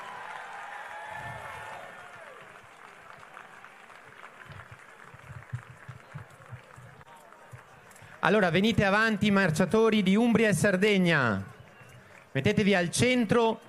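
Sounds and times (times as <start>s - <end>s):
audience applause: 0.0s - 8.4s
speech: 8.2s - 11.5s, 12.4s - 13.6s.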